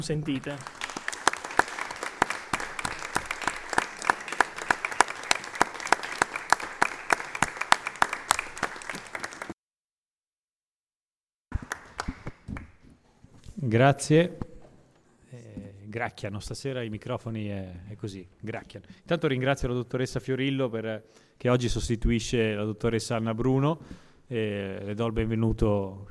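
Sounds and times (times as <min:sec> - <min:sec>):
speech: 0:00.0 - 0:00.8, 0:13.6 - 0:14.5, 0:15.9 - 0:26.0
audience applause: 0:00.0 - 0:09.6, 0:11.5 - 0:12.6.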